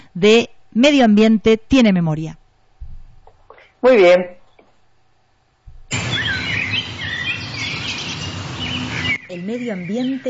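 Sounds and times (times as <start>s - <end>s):
low hum: 0.0s - 10.2s
speech: 0.2s - 2.4s, 3.8s - 4.4s, 9.3s - 10.2s
birds chirping and warbling: 5.9s - 10.2s.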